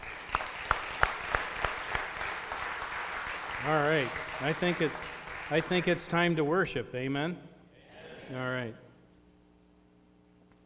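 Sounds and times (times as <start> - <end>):
audience round of applause: 0.0 - 6.1
speech: 3.6 - 7.5, 8.3 - 8.8.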